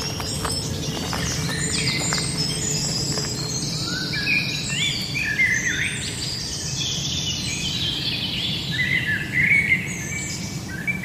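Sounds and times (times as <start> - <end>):
steady low rumble at the Ludwigsteich near Roßdorf: 0.0 - 6.5
birds chirping and trilling at the Ludwigsteich near Roßdorf: 0.0 - 11.0.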